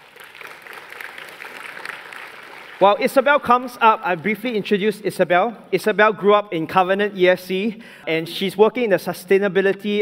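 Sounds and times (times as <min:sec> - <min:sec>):
audience applauding to welcome a guest on stage: 0:00.0 - 0:04.5
speech: 0:02.8 - 0:10.0.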